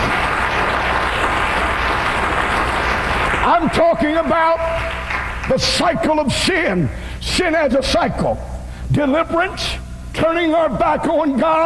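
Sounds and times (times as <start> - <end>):
audience clapping: 0.0 - 6.0
speech: 3.6 - 11.6.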